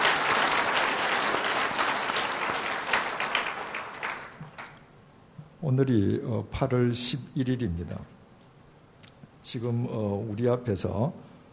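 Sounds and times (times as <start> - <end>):
crowd applauding: 0.0 - 4.9
speech: 5.6 - 8.2, 9.5 - 11.3.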